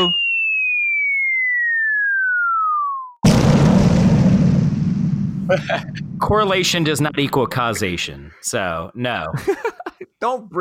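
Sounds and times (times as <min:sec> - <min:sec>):
speech: 0:00.0 - 0:00.2, 0:05.5 - 0:10.5
bomb-drop sound effect descending whistle: 0:00.0 - 0:03.2
bomb-drop sound effect explosion with rumbling boom: 0:03.2 - 0:08.0
laughter: 0:05.5 - 0:06.0, 0:09.2 - 0:10.1.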